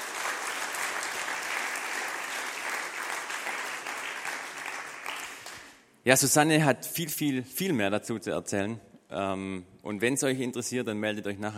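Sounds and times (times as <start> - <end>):
audience applause: 0.0 - 5.8
speech: 6.0 - 11.5.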